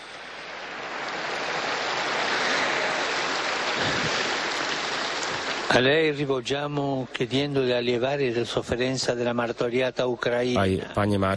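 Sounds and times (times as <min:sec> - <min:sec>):
crowd applause: 0:00.0 - 0:06.5
speech: 0:05.7 - 0:11.3.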